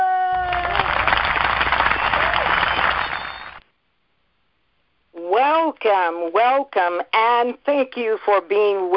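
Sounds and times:
audience applause welcoming a talk show host: 0.2 - 3.6
speech: 5.9 - 8.9.

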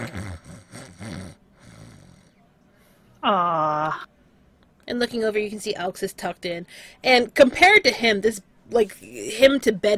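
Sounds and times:
very soft snores from the bed: 0.0 - 2.5
speech: 3.2 - 4.1, 4.9 - 9.9.

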